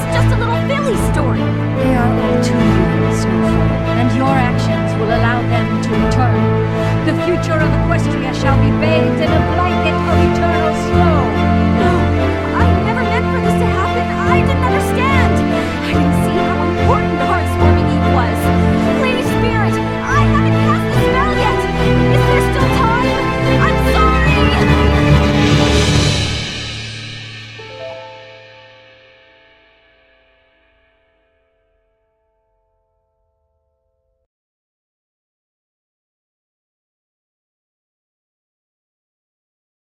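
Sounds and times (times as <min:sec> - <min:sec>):
vocals: 0:00.0 - 0:26.4
orchestra playing a cover: 0:00.0 - 0:30.0.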